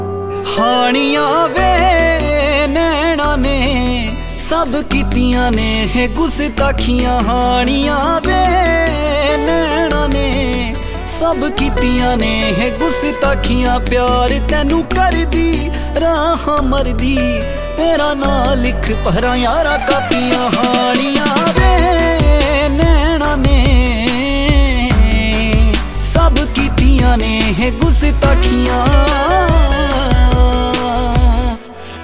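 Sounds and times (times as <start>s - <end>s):
Punjabi music: 0.0s - 32.0s.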